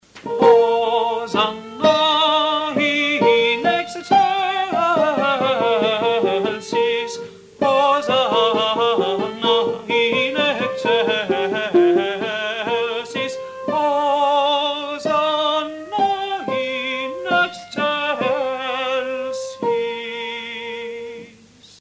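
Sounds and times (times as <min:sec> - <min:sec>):
sopranos singing a requiem Benedictus: 0:00.2 - 0:21.7.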